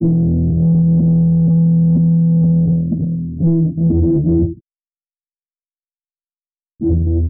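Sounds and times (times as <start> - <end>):
phonk bass loop: 0.0 - 4.6, 6.8 - 7.2.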